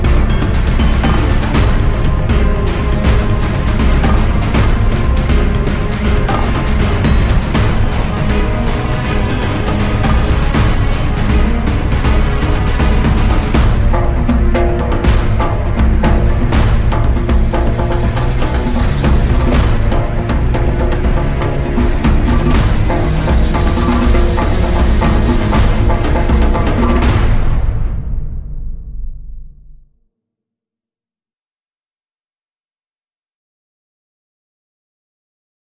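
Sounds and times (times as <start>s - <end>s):
instrumental music: 0.0s - 27.9s.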